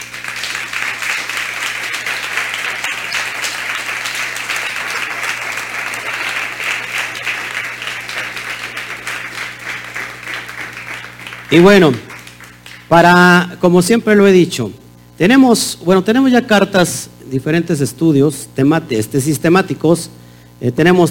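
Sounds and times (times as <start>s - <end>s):
loud audience applause: 0.0s - 12.9s
speech: 11.5s - 12.1s, 12.9s - 21.1s.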